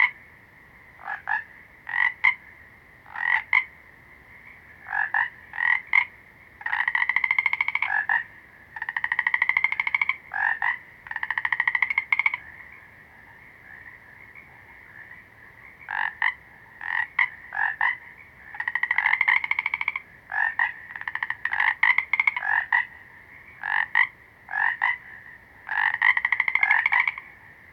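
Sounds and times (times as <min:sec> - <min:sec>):
small green frogs calling: 0:00.0 - 0:27.7.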